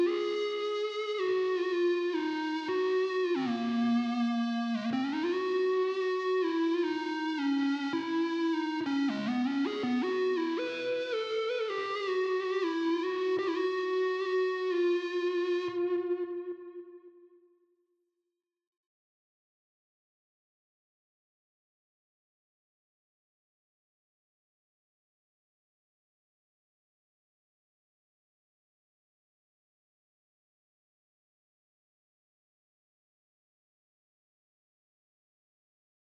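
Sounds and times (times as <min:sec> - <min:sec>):
synths: 0:00.0 - 0:17.1.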